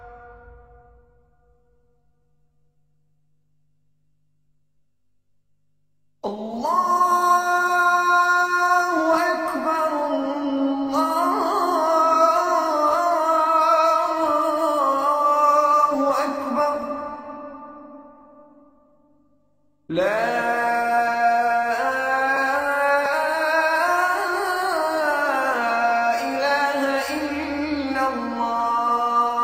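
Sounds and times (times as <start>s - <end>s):
Azan call to prayer: 6.2s - 18.5s, 19.9s - 29.4s.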